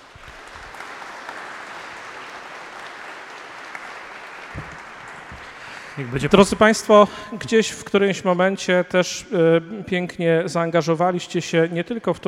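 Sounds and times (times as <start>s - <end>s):
crowd applause of welcome: 0.0s - 7.3s
speech: 6.0s - 12.2s.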